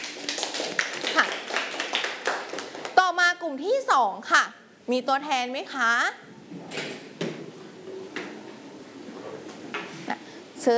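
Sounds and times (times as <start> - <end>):
classroom students clapping for a group: 0.0 - 3.0
speech: 3.4 - 6.8.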